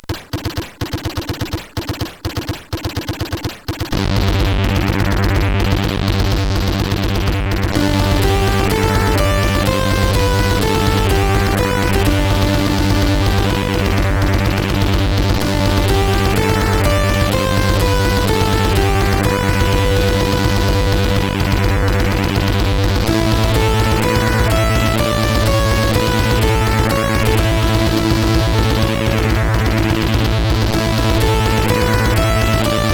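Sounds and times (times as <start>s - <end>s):
CSG8580R5 SID chip war music: 1.2s - 32.9s.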